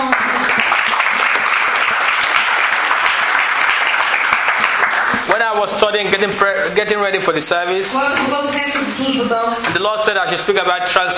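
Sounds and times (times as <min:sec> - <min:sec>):
audience clapping: 0:00.0 - 0:06.3
speech: 0:05.6 - 0:11.1.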